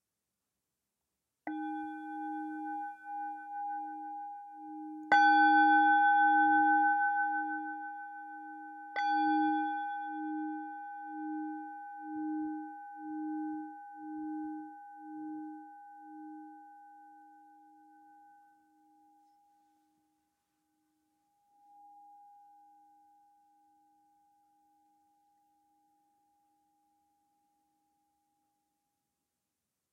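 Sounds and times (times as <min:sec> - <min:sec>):
meditation bell ringing: 0:01.5 - 0:20.0.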